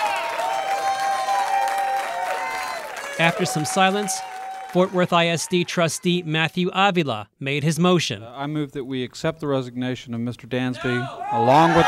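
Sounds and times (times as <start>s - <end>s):
supporters bursting into applause: 0.0s - 6.2s
speech: 3.2s - 11.8s.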